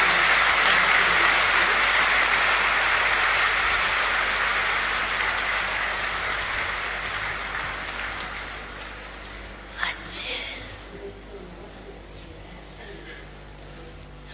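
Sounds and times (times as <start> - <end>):
audience clapping: 0.0 - 9.7.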